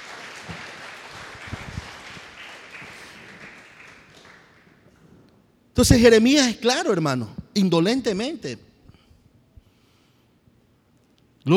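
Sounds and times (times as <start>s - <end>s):
audience applause: 0.0s - 4.9s
speech: 5.8s - 8.7s.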